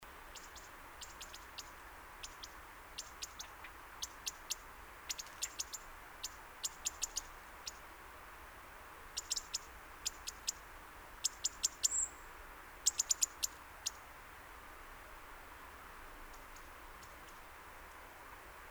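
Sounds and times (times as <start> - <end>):
steady background hiss: 0.0 - 18.7
European robin tick calls: 0.3 - 7.8, 9.2 - 10.6, 11.2 - 12.2, 12.8 - 14.1, 16.3 - 18.0.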